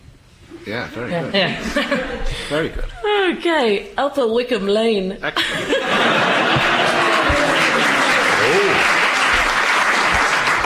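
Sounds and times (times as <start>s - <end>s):
speech: 0.6s - 6.7s
laughter: 1.4s - 2.9s, 5.3s - 10.4s
audience clapping: 6.0s - 10.6s.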